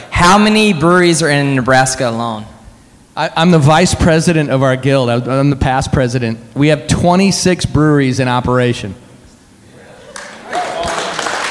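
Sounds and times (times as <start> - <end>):
speech: 0.2 - 2.5, 3.2 - 9.0
audience applause: 10.1 - 11.4.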